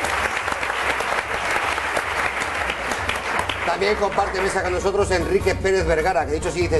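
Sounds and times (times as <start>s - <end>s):
audience applause: 0.0s - 4.9s
speech: 3.8s - 6.7s.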